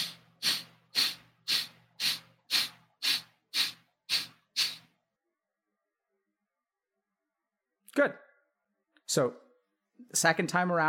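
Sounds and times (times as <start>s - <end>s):
forceful breaths out during a breathing exercise: 0.0s - 5.0s
speech: 8.0s - 8.3s, 9.2s - 9.4s, 10.0s - 10.8s.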